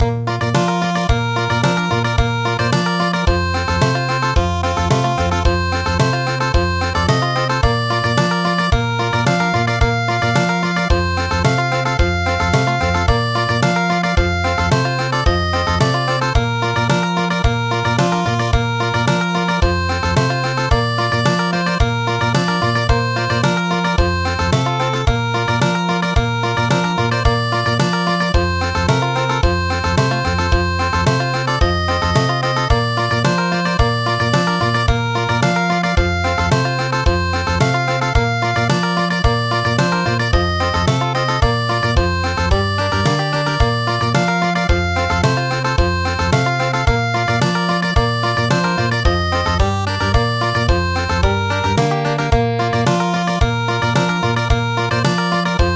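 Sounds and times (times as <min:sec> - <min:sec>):
country midi music: 0:00.0 - 0:55.7.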